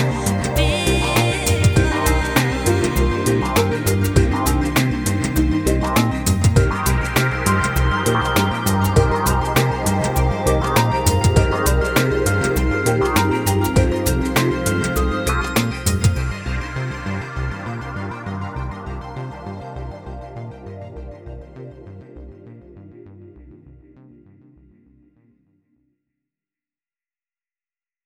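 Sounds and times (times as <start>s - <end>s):
vocal soundscape mix: 0.0s - 20.0s.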